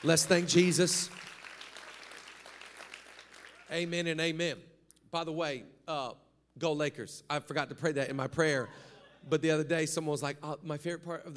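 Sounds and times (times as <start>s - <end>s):
speech: 0.0s - 1.3s, 3.7s - 11.3s
audience applause: 0.0s - 3.7s.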